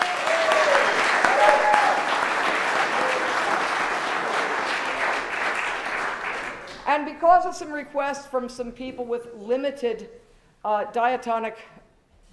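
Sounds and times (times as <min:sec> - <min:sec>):
audience applause: 0:00.0 - 0:06.9
speech: 0:07.1 - 0:11.8.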